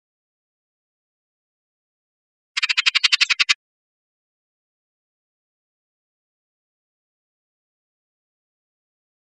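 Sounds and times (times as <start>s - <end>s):
Bullock's oriole calls: 2.6s - 3.5s.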